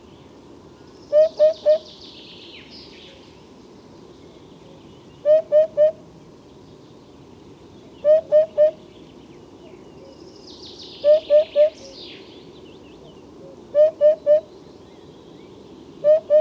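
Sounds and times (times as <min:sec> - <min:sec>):
crested hoopoe calling: 0:01.1 - 0:01.9, 0:05.2 - 0:06.0, 0:08.0 - 0:08.8, 0:11.0 - 0:11.9, 0:13.4 - 0:14.5, 0:16.0 - 0:16.3.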